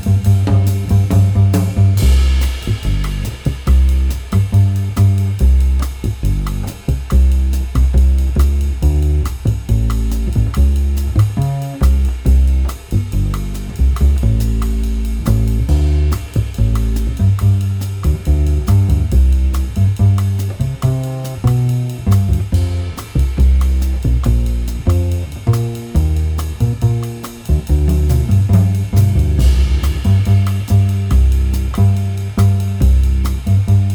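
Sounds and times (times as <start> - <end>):
bass playing chords, melody and comping: 0.0 - 33.9
drums: 0.0 - 33.9.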